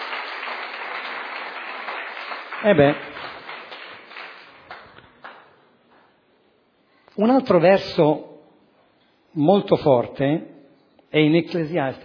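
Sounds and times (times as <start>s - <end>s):
audience applause: 0.0s - 5.5s
speech: 2.6s - 3.1s, 7.2s - 8.3s, 9.3s - 10.5s, 11.1s - 12.0s.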